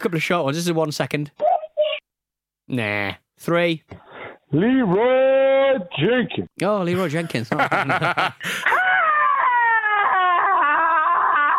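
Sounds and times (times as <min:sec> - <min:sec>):
speech: 0:00.0 - 0:01.5, 0:02.7 - 0:08.8
laughter: 0:07.0 - 0:08.8
recorded scream: 0:08.6 - 0:11.5.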